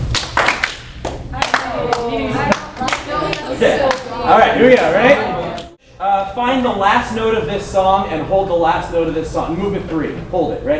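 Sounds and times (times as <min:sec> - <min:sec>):
hand claps echoing in a room: 0:00.1 - 0:04.1
speech: 0:03.6 - 0:05.3, 0:06.4 - 0:10.7.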